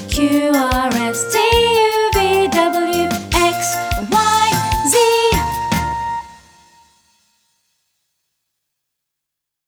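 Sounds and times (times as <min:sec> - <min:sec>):
American children's song: 0:00.0 - 0:06.8.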